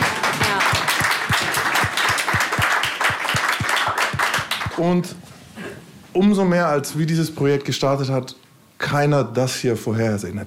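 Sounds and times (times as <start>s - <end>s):
rhythmic applause: 0.0s - 5.0s
speech: 4.8s - 5.2s, 6.1s - 10.4s.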